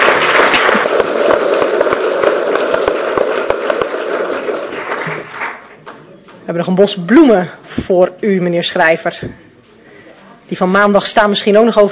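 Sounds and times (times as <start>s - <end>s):
applause for a newly sworn-in council committee member: 0.0s - 6.4s
speech: 6.5s - 9.4s, 10.5s - 11.9s.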